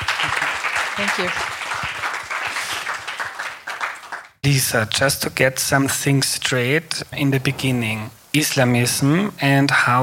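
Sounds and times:
audience round of applause welcoming a guest at a talk: 0.0 - 4.4
speech: 1.0 - 1.5, 4.4 - 10.0.

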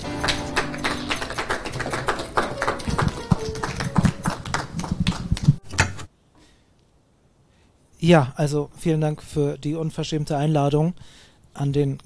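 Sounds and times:
audience applause: 0.0 - 5.6
speech: 8.0 - 12.0.

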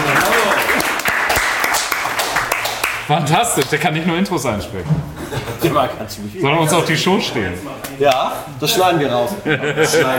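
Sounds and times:
audience applause: 0.0 - 3.3
speech: 3.1 - 10.1
laughter: 5.0 - 6.1, 9.1 - 10.1.

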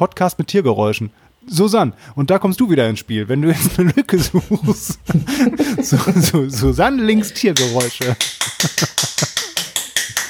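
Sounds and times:
speech: 0.0 - 9.0
laughter: 3.5 - 9.9
hand clapping: 6.6 - 10.2.

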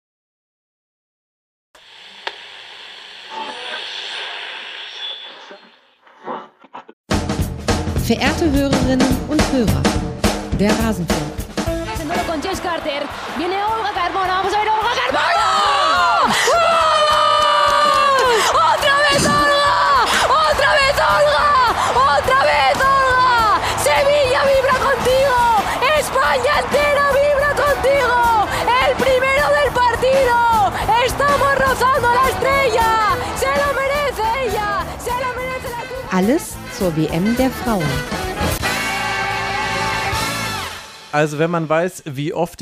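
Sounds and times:
speech: 8.1 - 11.3, 36.2 - 38.2, 41.2 - 42.5
stadium crowd cheering at a football goal: 11.9 - 36.1, 37.1 - 40.9.

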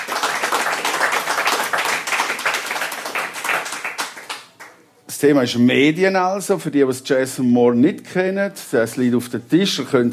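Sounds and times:
audience applause: 0.0 - 4.7
speech: 5.2 - 10.1.

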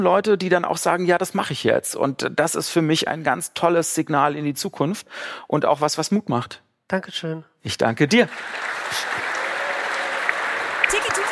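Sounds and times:
speech: 0.0 - 9.2
audience applause: 8.2 - 11.2.

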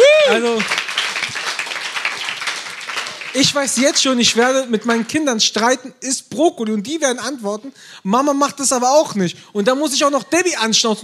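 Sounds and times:
audience applause: 0.0 - 5.1
speech: 3.4 - 11.0.

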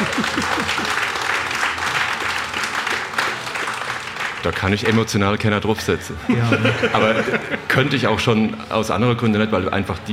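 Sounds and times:
laughter: 0.0 - 1.2, 6.2 - 8.0
audience applause: 0.0 - 5.0
speech: 4.4 - 10.1.

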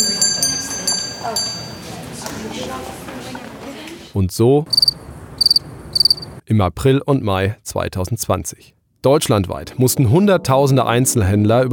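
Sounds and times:
busy shopping centre ambience: 0.0 - 6.4
speech: 1.2 - 1.6, 2.4 - 4.9, 6.5 - 11.7.

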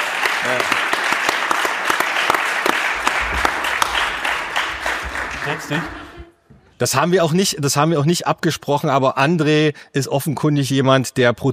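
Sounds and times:
audience applause: 0.0 - 6.4
speech: 0.4 - 1.0, 5.5 - 6.0, 6.8 - 11.5.

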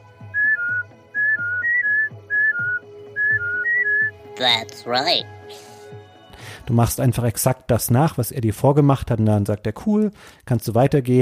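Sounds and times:
video game character whistling a password tune: 0.3 - 4.2
speech: 4.4 - 5.7, 6.7 - 11.2.

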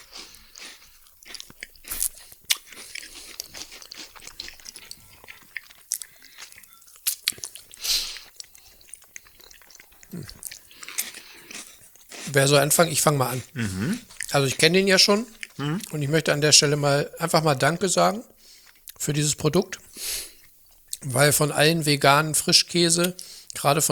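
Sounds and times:
biting and chewing homemade chestnut bread: 0.0 - 16.0
speech: 10.1 - 10.4, 12.3 - 18.3, 19.1 - 19.8, 21.1 - 23.9.

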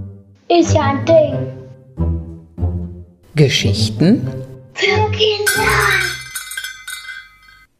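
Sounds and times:
speech: 0.6 - 1.6, 3.4 - 5.9
dishes clinking while loading dishwasher: 5.5 - 7.7.

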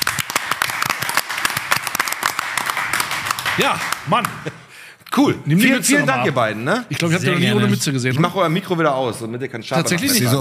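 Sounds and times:
live applause in the studio: 0.0 - 4.5
speech: 3.6 - 10.3.

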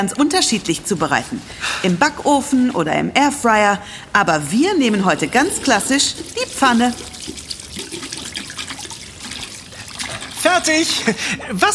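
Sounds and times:
speech: 0.0 - 7.5, 10.5 - 11.7
washing hands at sink under running tap water: 4.4 - 11.1.

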